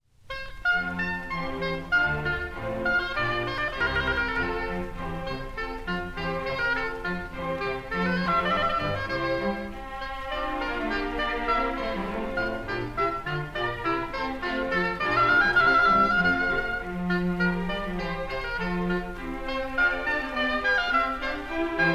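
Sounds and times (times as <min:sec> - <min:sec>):
oboe playing a concerto: 0:00.3 - 0:21.9.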